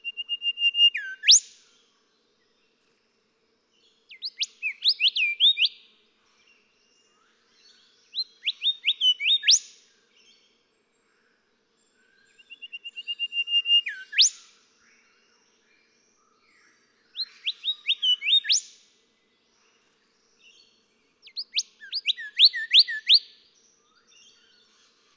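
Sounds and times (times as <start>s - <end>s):
golden whistler whistled song: 0.0s - 1.7s, 4.1s - 5.9s, 7.1s - 9.8s, 12.0s - 15.1s, 16.1s - 18.8s, 20.4s - 25.0s.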